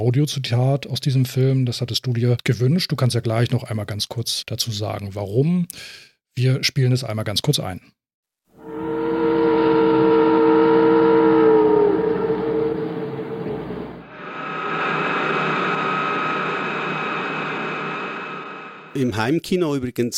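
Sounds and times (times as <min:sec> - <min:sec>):
speech: 0:00.0 - 0:08.0, 0:19.0 - 0:20.1
ship horn of the Petrox Explorer: 0:08.6 - 0:14.4
loud loading crane: 0:08.6 - 0:18.9.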